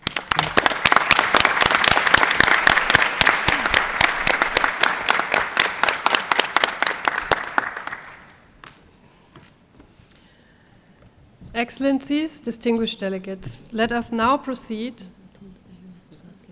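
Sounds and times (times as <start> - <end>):
audience applause: 0.0 - 8.4
speech: 11.6 - 15.2.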